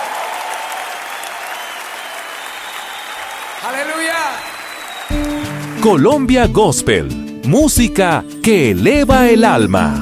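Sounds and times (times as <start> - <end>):
audience applause: 0.0 - 6.2
speech: 3.6 - 9.9.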